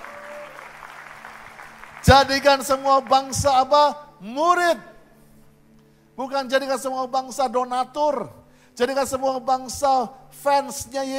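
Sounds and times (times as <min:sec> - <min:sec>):
audience applause: 0:00.0 - 0:03.1
speech: 0:02.0 - 0:04.9, 0:06.2 - 0:11.1.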